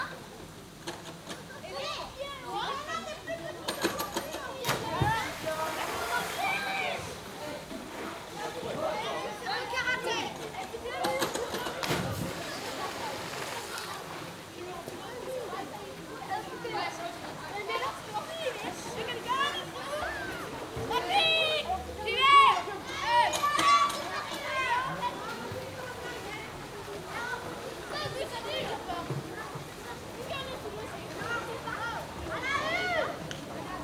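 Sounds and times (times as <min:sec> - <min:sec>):
people at an exterior swimming pool: 0:00.0 - 0:33.8.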